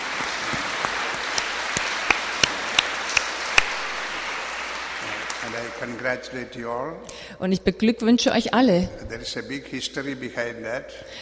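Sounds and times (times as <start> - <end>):
audience applause: 0.0 - 6.4
speech: 5.8 - 11.2.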